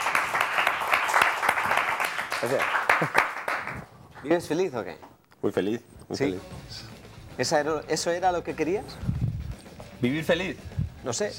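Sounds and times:
audience applause: 0.0s - 4.4s
speech: 2.4s - 3.2s, 4.2s - 9.1s, 10.0s - 11.3s.

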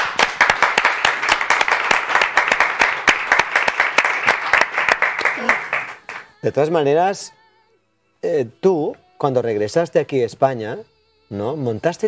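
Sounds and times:
audience applause: 0.0s - 6.3s
speech: 6.4s - 7.4s, 8.2s - 12.0s.

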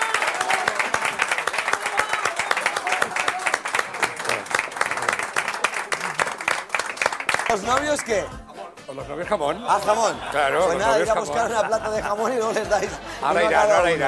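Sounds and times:
audience applause: 0.0s - 8.1s
speech: 7.5s - 14.0s
laughter: 9.5s - 14.0s.

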